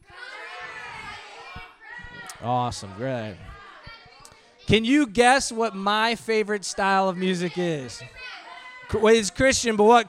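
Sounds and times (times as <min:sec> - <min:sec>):
children shouting: 0:00.0 - 0:05.0, 0:06.8 - 0:09.4
speech: 0:02.4 - 0:03.5, 0:04.7 - 0:10.0.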